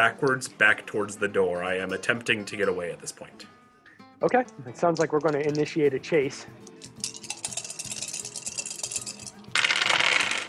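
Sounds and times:
speech: 0.0 - 3.6, 4.2 - 7.0
dice being rolled: 4.8 - 5.8, 6.9 - 10.4.

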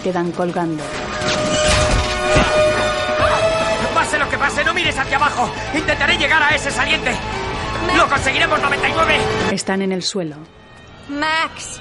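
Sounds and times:
speech: 0.0 - 2.7, 4.1 - 11.7
clattering debris: 0.9 - 3.3
electric pole giving way and falling in an action comedy film scene: 1.1 - 3.0.

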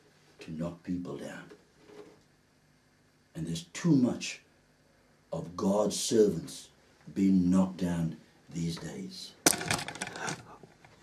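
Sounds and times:
speech: 0.5 - 1.6, 3.4 - 4.4, 5.3 - 10.4
camera being accidentally knocked: 9.5 - 10.4.

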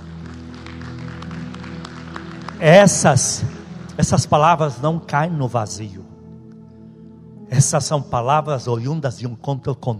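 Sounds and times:
audience applause: 0.0 - 3.1
speech: 2.6 - 6.1, 7.5 - 9.9.

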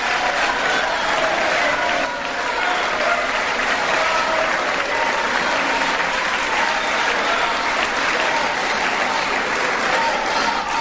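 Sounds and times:
applause in congress: 0.0 - 10.8.

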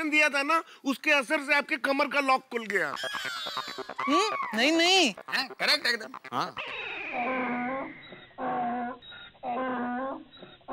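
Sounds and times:
speech: 0.0 - 8.5
donkey braying: 2.7 - 10.7.

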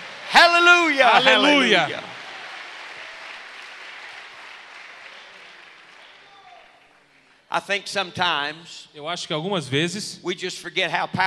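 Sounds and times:
audience applause: 0.0 - 7.4
speech: 0.9 - 2.1, 7.5 - 11.2.

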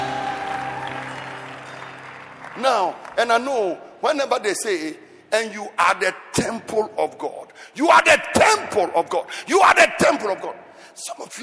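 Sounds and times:
audience clapping: 0.0 - 3.8
speech: 2.6 - 11.4.

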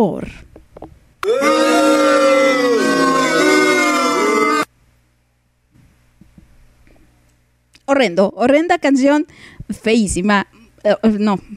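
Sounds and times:
speech: 0.0 - 0.5, 1.3 - 2.0, 8.0 - 11.5
booing sound effect: 1.2 - 4.7.

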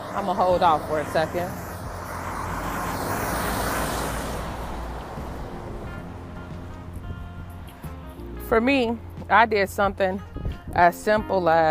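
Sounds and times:
semi truck driving by: 0.0 - 10.4
speech: 0.2 - 1.6, 8.5 - 11.6.

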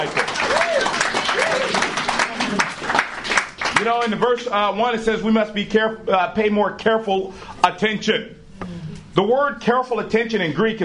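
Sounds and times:
audience applause: 0.0 - 4.1
speech: 3.8 - 10.8.

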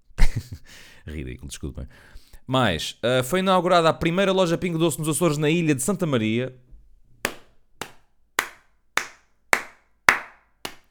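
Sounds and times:
laughter: 0.2 - 0.7
speech: 1.0 - 6.6
hand claps: 7.2 - 10.8.

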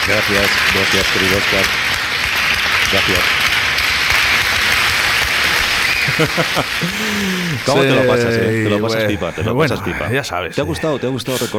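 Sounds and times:
applause: 0.0 - 8.8
speech: 0.1 - 2.1, 2.9 - 3.4, 6.1 - 11.5
laughter: 5.6 - 11.5.

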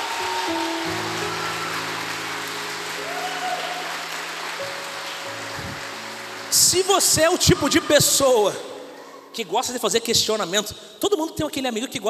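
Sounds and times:
audience applause: 0.0 - 8.2
sustained keyboard or organ chords: 0.0 - 10.2
speech: 6.7 - 8.7, 9.4 - 12.0.

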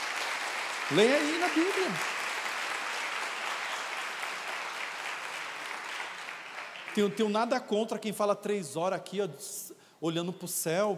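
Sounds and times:
audience applauding: 0.0 - 7.4
speech: 0.9 - 2.2, 7.0 - 10.9.

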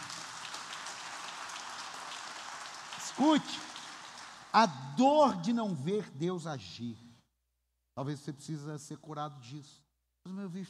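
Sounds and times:
audience applause: 0.0 - 4.6
speech: 3.1 - 3.7, 4.5 - 7.0, 8.0 - 10.6.

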